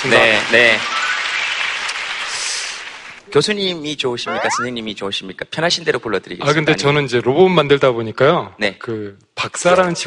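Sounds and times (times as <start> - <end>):
speech: 0.0 - 0.9, 3.3 - 10.0
audience applause: 0.0 - 3.2.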